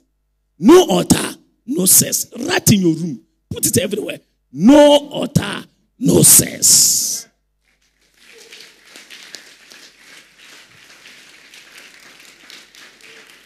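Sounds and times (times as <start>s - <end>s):
speech: 0.6s - 7.1s
audience clapping: 7.6s - 13.4s.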